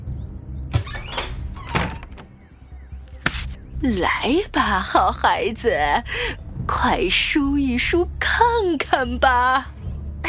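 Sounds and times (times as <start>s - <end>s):
door eased open a crack: 0.7s - 2.4s
speech: 3.8s - 9.7s.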